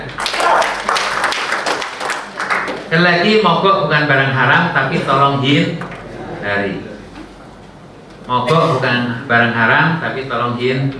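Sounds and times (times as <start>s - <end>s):
audience applause: 0.1s - 2.9s
speech: 2.9s - 6.9s, 8.3s - 10.9s.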